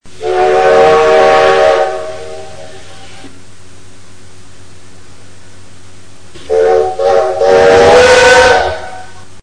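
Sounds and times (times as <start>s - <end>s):
diesel locomotive signal horn: 0.1s - 3.3s, 6.4s - 9.3s.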